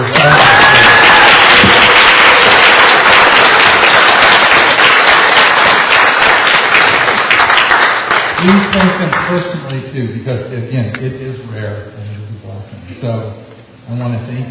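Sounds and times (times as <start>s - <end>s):
large audience applause: 0.0s - 9.4s
speech: 8.7s - 12.0s, 13.0s - 13.3s, 13.9s - 14.4s.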